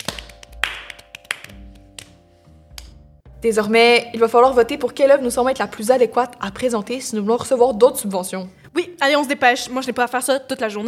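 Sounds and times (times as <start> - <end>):
sparse uneven clapping: 0.0 - 3.0
speech: 3.4 - 10.8.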